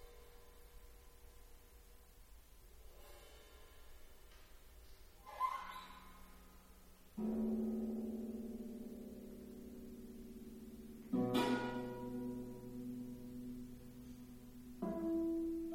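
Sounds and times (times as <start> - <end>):
music piece: 7.2 - 15.7.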